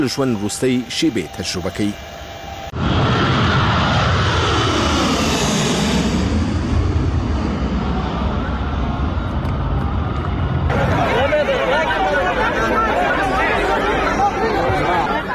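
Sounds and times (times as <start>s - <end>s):
speech: 0.0s - 2.2s
departing plane engines roaring at a crowded airport: 0.0s - 15.3s
crowd chatter of people gathered near the aircraft: 7.8s - 15.3s.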